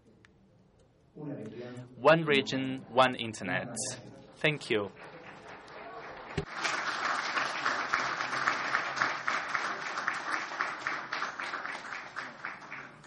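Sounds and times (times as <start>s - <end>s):
speech: 1.2s - 5.1s
audience applause: 5.0s - 13.0s.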